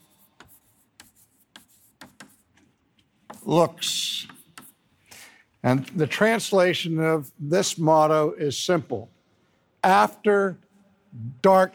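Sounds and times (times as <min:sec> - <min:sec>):
pen strokes of handwriting: 0:00.0 - 0:04.8
speech: 0:03.4 - 0:04.4, 0:05.6 - 0:09.2, 0:09.8 - 0:11.7.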